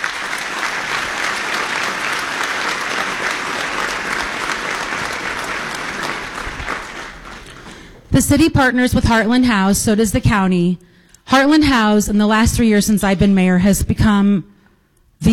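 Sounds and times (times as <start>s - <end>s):
audience applause: 0.0s - 8.1s
speech: 8.2s - 14.5s, 15.2s - 15.3s.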